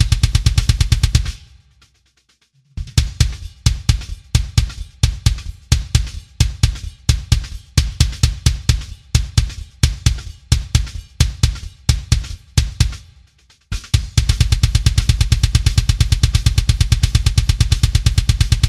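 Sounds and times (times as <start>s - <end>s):
live kick drum with added punchy kick drum sample for more attack: 0.0s - 1.7s, 2.8s - 18.6s.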